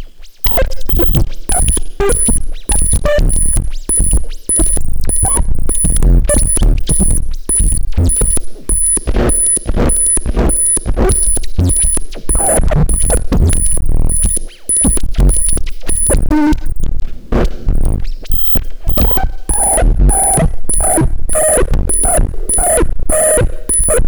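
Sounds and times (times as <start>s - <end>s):
audio feedback: 0.5s - 16.7s, 17.4s - 24.0s.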